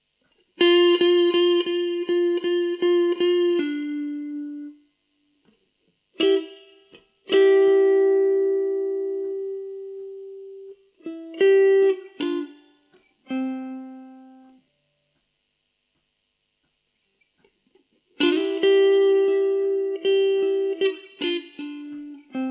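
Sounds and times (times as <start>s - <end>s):
blues music: 0.6s - 4.8s, 6.2s - 14.6s, 18.2s - 22.4s.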